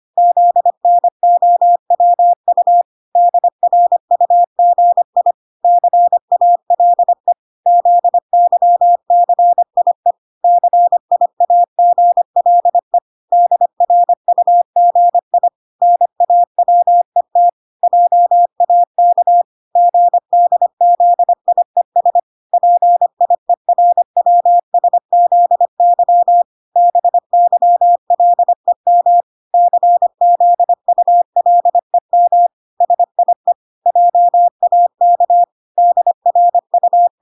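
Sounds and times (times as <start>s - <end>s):
morse code beeps at 25 words per minute: 0.2s - 37.2s.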